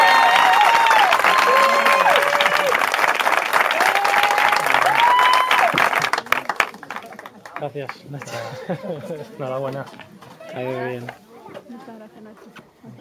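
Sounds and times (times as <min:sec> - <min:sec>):
wedding guests applauding the couple: 0:00.0 - 0:08.4
speech: 0:07.7 - 0:11.2, 0:11.9 - 0:12.6
laughter: 0:08.1 - 0:09.6.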